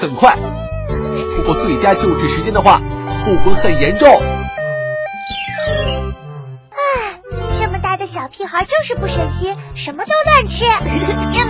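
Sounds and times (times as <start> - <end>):
speech: 0.0 - 4.4, 8.3 - 11.4
ambulance siren: 3.0 - 6.3.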